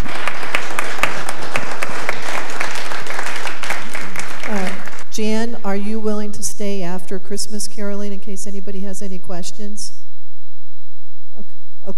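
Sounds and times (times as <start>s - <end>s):
room full of people clapping: 0.0s - 5.0s
speech: 5.2s - 10.0s, 11.4s - 11.9s.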